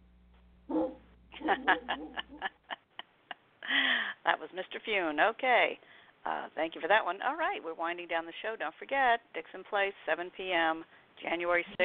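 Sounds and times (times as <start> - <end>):
dog barking: 0.7 - 2.5
laughter: 1.4 - 3.4
speech: 4.4 - 11.8.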